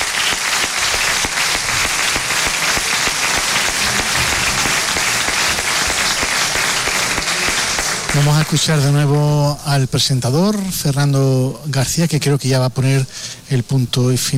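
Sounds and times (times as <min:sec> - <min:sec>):
audience applause: 0:00.0 - 0:09.4
speech: 0:08.5 - 0:14.3.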